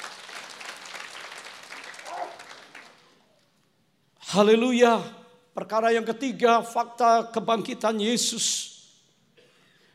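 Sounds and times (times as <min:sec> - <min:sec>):
audience applause: 0:00.0 - 0:03.2
speech: 0:04.3 - 0:08.8.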